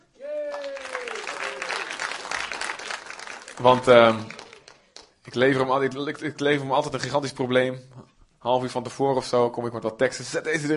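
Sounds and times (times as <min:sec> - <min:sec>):
audience applause: 0:00.2 - 0:05.1
speech: 0:03.6 - 0:04.4, 0:05.3 - 0:10.7.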